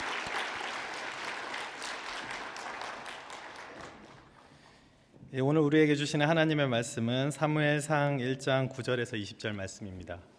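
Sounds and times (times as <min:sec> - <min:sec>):
audience applause: 0:00.0 - 0:04.8
speech: 0:05.3 - 0:10.3.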